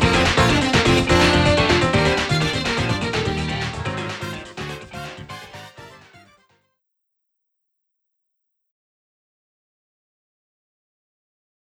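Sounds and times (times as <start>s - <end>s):
boss battle game music: 0.0s - 6.3s.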